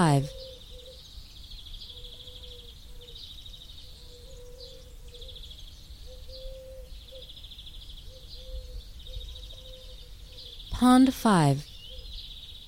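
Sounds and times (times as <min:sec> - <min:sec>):
speech: 0:00.0 - 0:00.4, 0:10.8 - 0:11.7
small birds chattering: 0:00.0 - 0:12.6
turtle dove giving low purring coos: 0:00.1 - 0:01.0, 0:01.9 - 0:03.2, 0:03.9 - 0:05.4, 0:06.0 - 0:07.3, 0:08.0 - 0:10.6.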